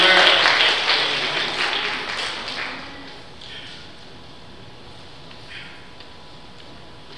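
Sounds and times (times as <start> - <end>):
audience clapping: 0.0 - 3.2.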